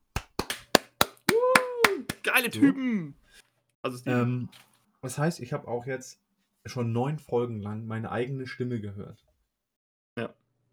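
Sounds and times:
hand claps: 0.0s - 2.5s
person cheering: 0.4s - 3.1s
speech: 2.2s - 3.2s, 3.8s - 9.2s, 10.2s - 10.4s.

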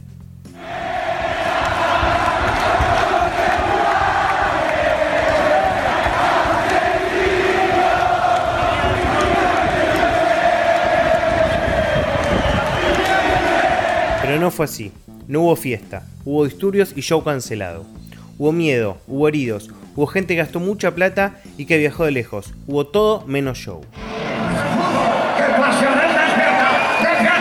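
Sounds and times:
speech: 0.4s - 0.8s, 14.5s - 24.0s
football fans chanting against power: 0.6s - 14.4s, 24.0s - 27.4s.

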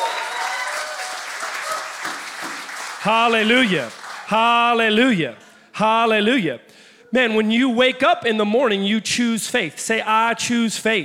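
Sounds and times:
audience clapping: 0.0s - 5.0s
speech: 3.0s - 11.0s.

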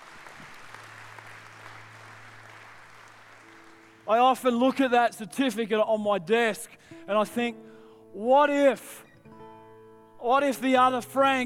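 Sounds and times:
audience clapping: 0.0s - 4.9s
speech: 4.1s - 9.0s, 10.2s - 11.4s.

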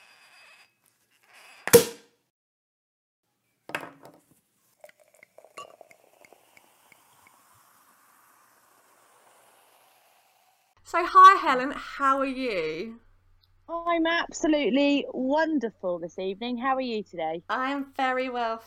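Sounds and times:
champagne bottle opening with a pop: 1.7s - 2.1s
glasses clinking: 4.9s - 6.3s
speech: 10.9s - 13.0s, 13.7s - 18.6s.

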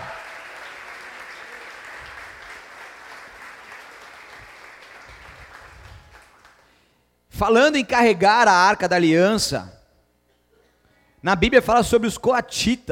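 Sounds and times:
audience applauding: 0.0s - 6.7s
speech: 7.4s - 9.8s, 11.2s - 12.9s.

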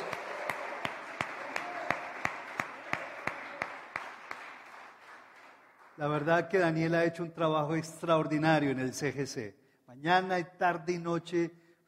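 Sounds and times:
crowd noise: 0.0s - 4.6s
audience applause: 0.0s - 6.2s
speech: 6.0s - 11.6s.

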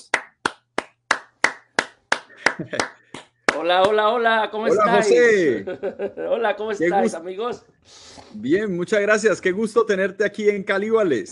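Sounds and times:
welcoming applause hand claps: 0.0s - 4.2s
laughter: 2.3s - 3.1s, 4.7s - 7.0s
speech: 2.6s - 3.0s, 3.6s - 11.3s.

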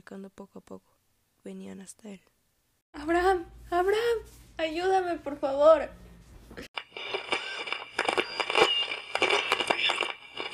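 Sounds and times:
speech: 0.1s - 6.7s
radio static interference crackle: 6.8s - 10.5s.

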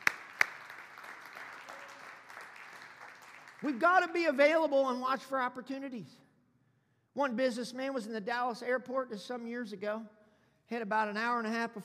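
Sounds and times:
sharp loud hand claps: 0.0s - 3.8s
speech: 3.6s - 6.2s, 7.2s - 11.8s.

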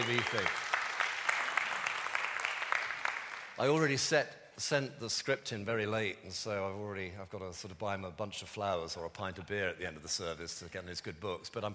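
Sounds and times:
audience applause: 0.0s - 3.6s
speech: 0.1s - 0.7s, 3.6s - 11.7s.

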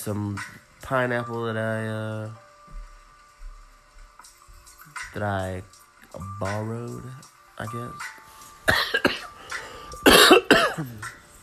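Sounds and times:
speech: 0.0s - 2.4s, 5.2s - 9.1s, 10.8s - 11.2s
person coughing: 8.7s - 9.3s, 10.0s - 11.1s.

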